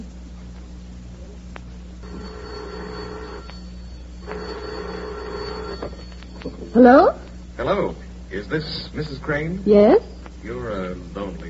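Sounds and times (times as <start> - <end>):
telephone bell ringing: 2.0 - 7.2
speech: 6.8 - 11.4.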